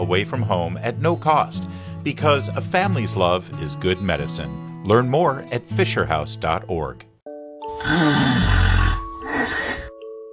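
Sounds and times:
speech: 0.1s - 7.1s, 7.8s - 8.6s
snoring from sleep apnea: 7.7s - 10.0s.

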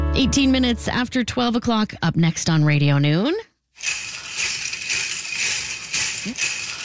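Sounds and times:
speech: 0.2s - 4.2s, 6.2s - 6.6s
metal cones on a jingle dress jingling: 3.8s - 6.8s.

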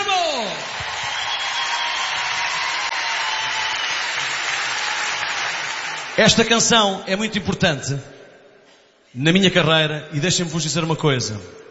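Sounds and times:
audience applause: 0.4s - 6.4s
speech: 6.2s - 8.1s, 9.2s - 11.6s.

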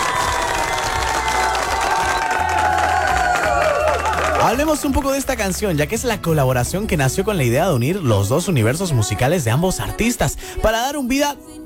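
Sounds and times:
applause and cheering: 0.0s - 6.1s
speech: 4.5s - 11.6s.

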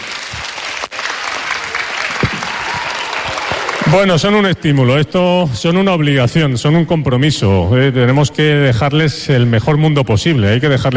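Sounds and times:
crowd applause: 0.0s - 4.6s
speech: 3.9s - 10.9s.

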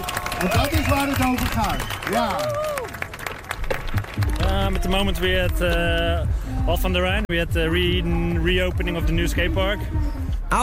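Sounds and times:
crowd applause: 0.0s - 5.6s
speech: 0.4s - 2.7s, 4.2s - 10.6s.

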